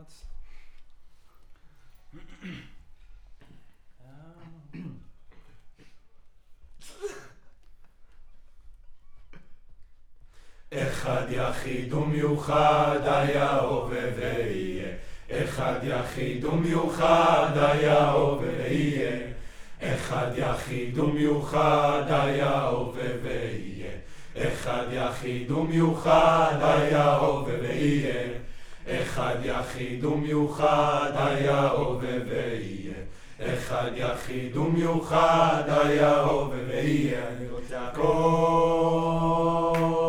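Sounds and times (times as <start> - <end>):
choir singing: 10.7 - 40.0.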